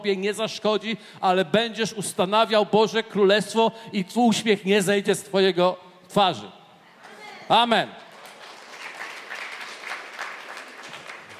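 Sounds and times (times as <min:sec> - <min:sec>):
speech: 0:00.0 - 0:06.6, 0:07.5 - 0:08.0
audience clapping: 0:08.1 - 0:11.3.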